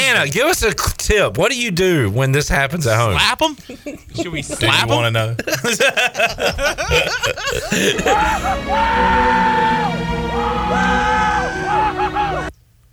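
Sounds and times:
speech: 0:00.1 - 0:11.1
laughter: 0:03.6 - 0:08.6
men whooping woo-hoo in movie clip: 0:06.9 - 0:12.5.

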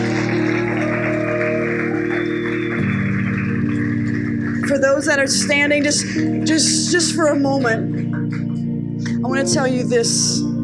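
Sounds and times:
crowd applauding: 0:00.0 - 0:06.5
sustained keyboard chords: 0:00.0 - 0:10.6
speech: 0:05.0 - 0:08.1, 0:09.3 - 0:10.5.

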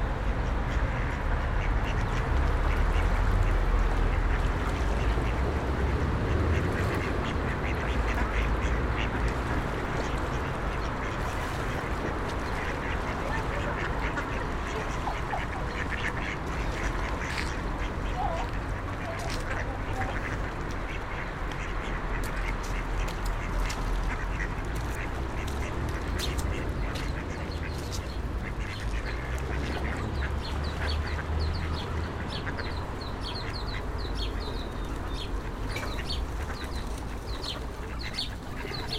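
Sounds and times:
road traffic rumble from cars and buses: 0:00.0 - 0:38.9
ducks quacking: 0:00.2 - 0:38.9.

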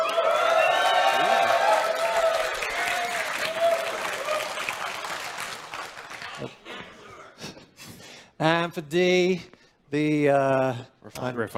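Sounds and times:
live audience cheering to vote for the Tavarin Light Fighter option: 0:00.0 - 0:06.4
audience clapping: 0:00.0 - 0:06.5
speech: 0:08.4 - 0:11.5.

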